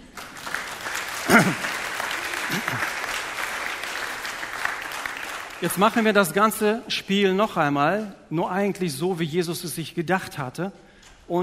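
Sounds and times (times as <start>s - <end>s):
crowd applauding: 0.0s - 6.5s
short voice-like sounds: 1.3s - 1.7s
speech: 5.6s - 11.4s.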